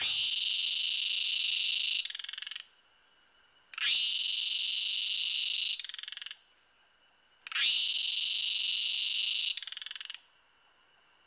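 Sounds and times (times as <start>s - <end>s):
cicada singing: 0.0s - 2.6s, 3.8s - 6.3s, 7.5s - 10.2s.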